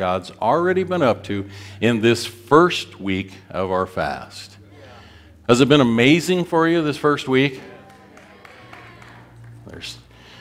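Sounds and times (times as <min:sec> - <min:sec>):
speech: 0:00.0 - 0:04.6, 0:05.5 - 0:07.7, 0:09.8 - 0:10.0
a few audience members cheering: 0:07.3 - 0:10.0.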